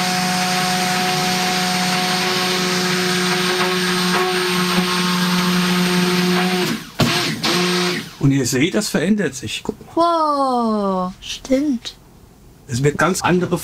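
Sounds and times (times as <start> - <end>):
motorized mixer blending oils with lye in a mixing bowl: 0.0 - 8.3
speech: 8.5 - 12.0, 12.7 - 13.6.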